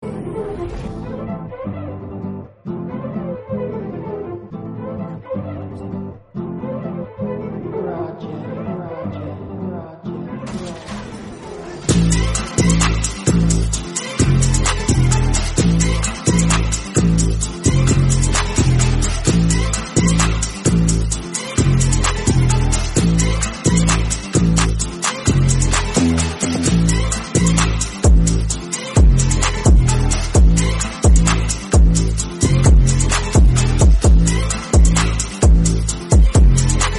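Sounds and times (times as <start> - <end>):
bass boosted instrumental music: 11.8 - 36.9.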